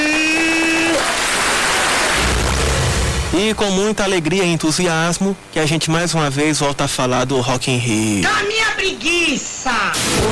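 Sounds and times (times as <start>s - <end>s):
applause: 0.0s - 2.3s
speech: 3.4s - 10.3s.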